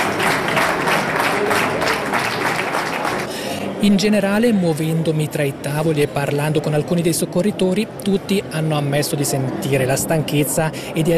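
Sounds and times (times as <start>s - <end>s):
warm applause welcoming returning rescuers: 0.0s - 3.5s
speech: 3.8s - 11.1s.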